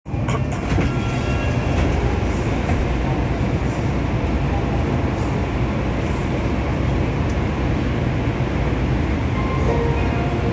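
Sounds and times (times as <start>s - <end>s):
train: 0.0s - 10.5s.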